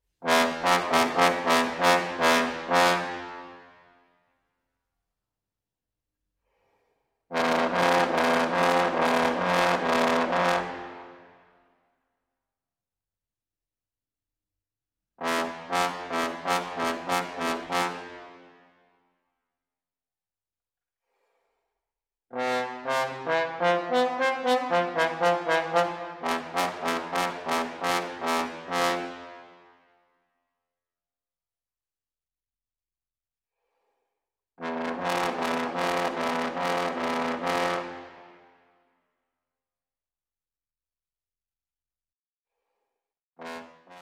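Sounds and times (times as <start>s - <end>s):
trombone: 0.2s - 3.8s, 7.3s - 11.3s, 15.2s - 18.6s, 22.3s - 29.6s, 34.6s - 38.4s, 43.4s - 44.0s.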